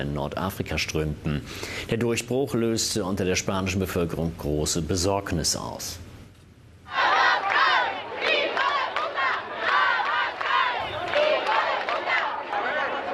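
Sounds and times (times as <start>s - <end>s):
speech: 0.0s - 6.1s
protesters chanting slogans at a rally in Ceuta: 6.9s - 13.1s.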